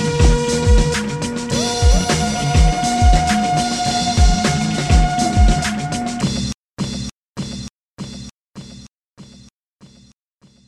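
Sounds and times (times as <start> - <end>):
disco music: 0.0 - 6.3.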